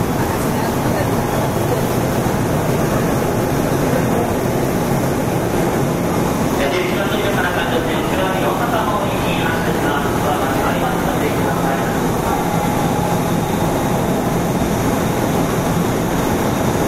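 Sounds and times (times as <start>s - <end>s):
JR 201 series train on the Osaka Loop Line rumbling: 0.0s - 16.8s.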